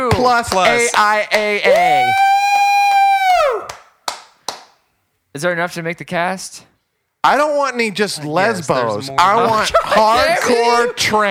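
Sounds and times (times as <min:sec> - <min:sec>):
speech: 0:00.2 - 0:02.3, 0:05.4 - 0:11.2
applause: 0:03.6 - 0:04.7.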